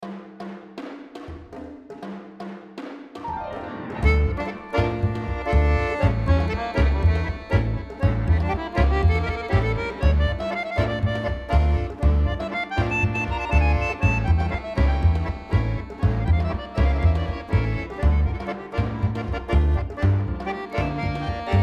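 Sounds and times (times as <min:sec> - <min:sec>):
tango music: 0:03.3 - 0:21.6.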